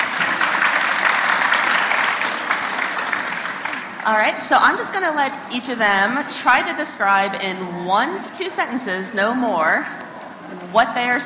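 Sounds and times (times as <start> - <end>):
audience applause welcoming a panel: 0.0 - 4.3
speech: 4.1 - 10.0, 10.7 - 11.2.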